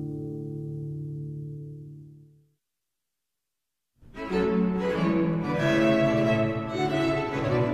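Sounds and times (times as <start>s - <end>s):
cello solo: 4.1s - 7.7s.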